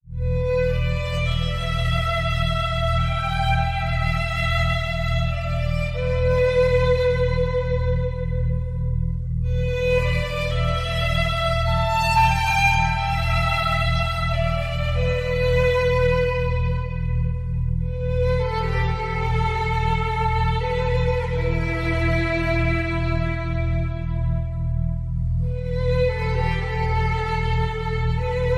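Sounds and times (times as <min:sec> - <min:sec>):
sad string loops: 0:00.1 - 0:28.5.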